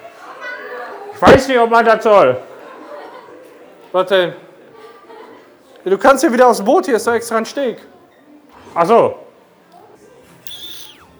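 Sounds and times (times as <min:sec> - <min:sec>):
speech: 0:01.2 - 0:02.5, 0:03.9 - 0:04.5, 0:05.8 - 0:07.9, 0:08.7 - 0:09.2
person whistling: 0:10.4 - 0:11.1.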